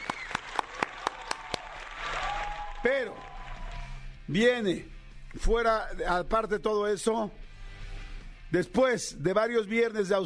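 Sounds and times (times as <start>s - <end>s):
studio audience applause: 0.0s - 4.0s
speech: 2.8s - 3.3s, 4.3s - 7.4s, 8.5s - 10.2s.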